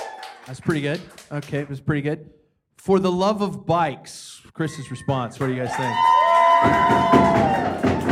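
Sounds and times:
speech: 0.5 - 7.9
furniture banging: 6.7 - 8.1.

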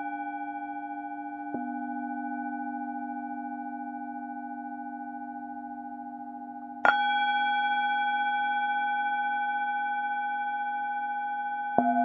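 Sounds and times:
Tibetan singing bowls ringing: 0.0 - 12.0.

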